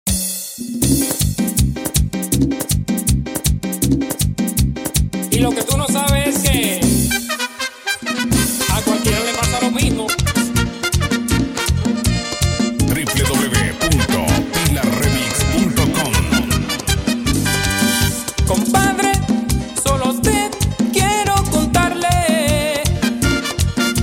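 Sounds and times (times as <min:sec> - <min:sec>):
merengue music: 0:00.1 - 0:24.0.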